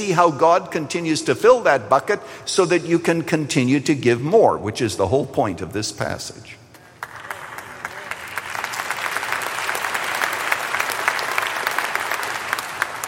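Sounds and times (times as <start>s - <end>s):
speech: 0.0s - 6.6s
audience applause: 7.0s - 13.0s.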